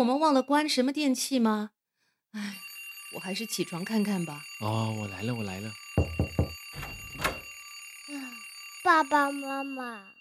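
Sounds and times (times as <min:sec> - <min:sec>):
speech: 0:00.0 - 0:06.2, 0:08.8 - 0:10.1
bell ringing in the night: 0:02.6 - 0:10.1.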